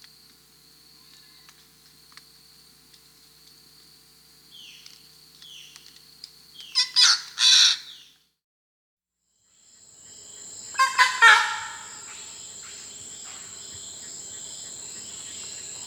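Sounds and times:
red-throated caracara calling: 0:06.6 - 0:08.2, 0:10.7 - 0:12.4.

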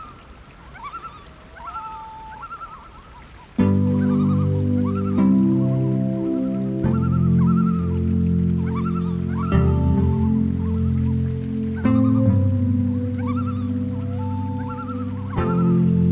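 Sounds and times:
loon tremolo: 0:03.6 - 0:16.0.

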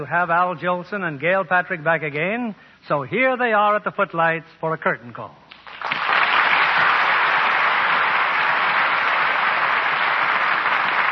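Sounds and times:
speech: 0:00.0 - 0:05.9
studio audience applause: 0:05.5 - 0:11.1.

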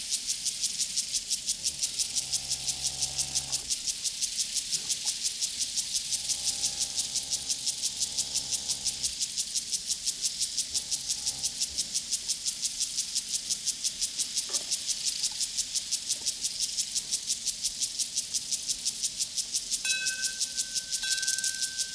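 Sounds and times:
crickets chirping on a prairie: 0:00.2 - 0:21.9
cowbells on a prairie: 0:19.8 - 0:21.9.

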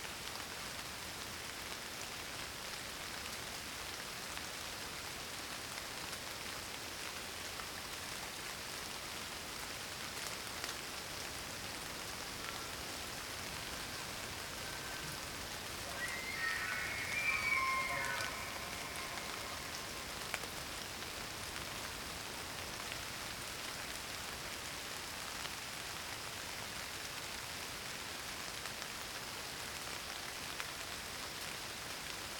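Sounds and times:
rain shower in the wilderness: 0:00.0 - 0:32.3.

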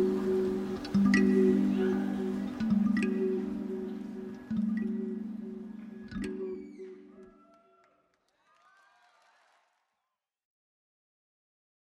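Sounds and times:
kalimba: 0:00.0 - 0:07.5.

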